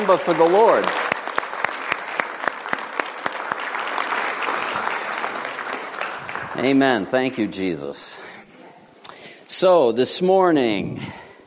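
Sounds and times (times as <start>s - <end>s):
speech: 0.0s - 1.0s, 6.6s - 8.3s, 9.6s - 11.2s
audience clapping: 0.0s - 7.6s.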